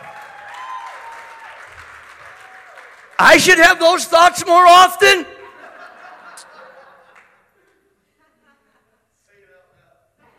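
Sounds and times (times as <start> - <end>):
audience applause: 0.0 - 3.7
speech: 3.2 - 5.3
laughter: 5.3 - 9.1.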